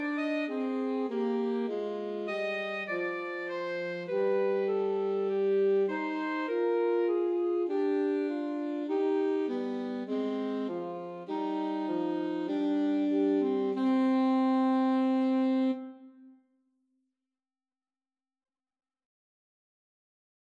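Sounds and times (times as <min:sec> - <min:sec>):
alto saxophone duet: 0:00.0 - 0:16.4.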